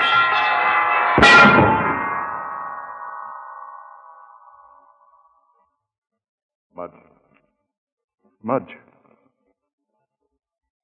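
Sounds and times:
heavy church bell hurtling downward: 0:00.0 - 0:05.4
speech: 0:08.5 - 0:08.8.

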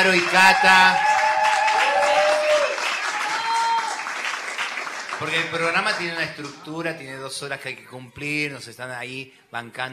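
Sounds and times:
speech: 0:00.0 - 0:01.1, 0:05.2 - 0:09.9
audience clapping: 0:00.0 - 0:07.2.

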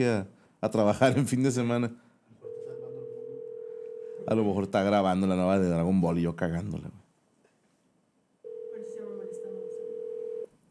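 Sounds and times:
speech: 0:00.0 - 0:02.0, 0:04.2 - 0:07.0
telephone line tone: 0:02.4 - 0:04.3, 0:08.4 - 0:10.5.

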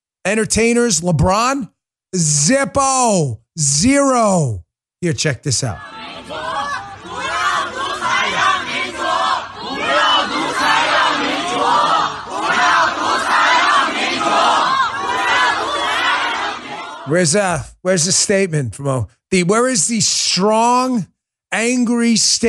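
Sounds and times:
speech: 0:00.3 - 0:06.4, 0:17.1 - 0:22.4
protest crowd in China: 0:05.6 - 0:17.2.

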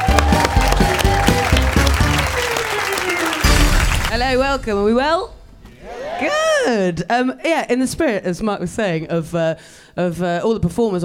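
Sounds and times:
audience clapping and cheering: 0:00.0 - 0:04.9
speech: 0:04.5 - 0:11.0.

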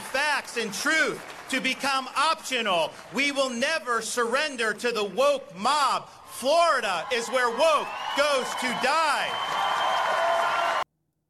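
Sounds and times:
audience applause: 0:00.0 - 0:03.3, 0:06.8 - 0:10.8
speech: 0:00.5 - 0:09.6.

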